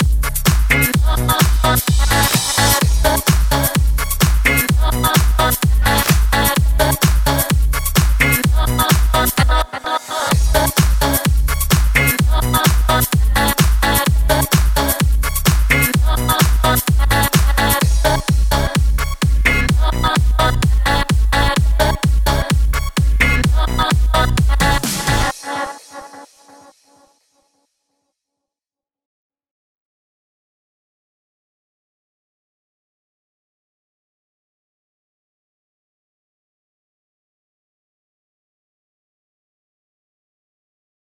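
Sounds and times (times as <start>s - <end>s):
house music: 0.0s - 26.6s.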